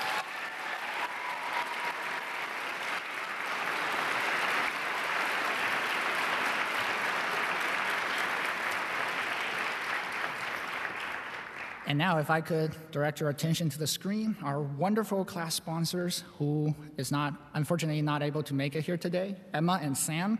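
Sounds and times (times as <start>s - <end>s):
audience applause: 0.0s - 12.0s
speech: 11.9s - 20.3s.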